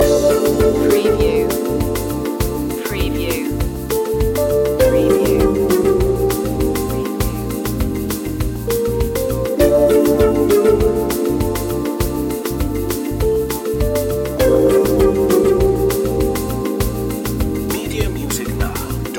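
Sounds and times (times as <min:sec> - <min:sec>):
bossa nova loop: 0:00.0 - 0:19.1.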